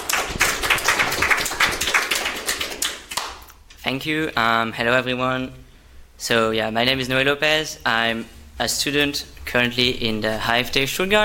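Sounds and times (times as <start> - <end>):
audience applause: 0.0 - 3.4
speech: 3.9 - 5.6, 6.2 - 11.2.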